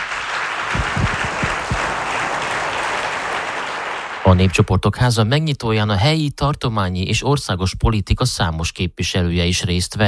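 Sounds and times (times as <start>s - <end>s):
audience applause: 0.0s - 4.7s
speech: 4.2s - 10.0s.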